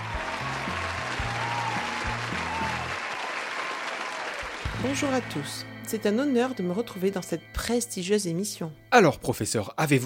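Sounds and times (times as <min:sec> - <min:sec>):
audience applause: 0:00.0 - 0:05.2
speech: 0:04.8 - 0:10.0.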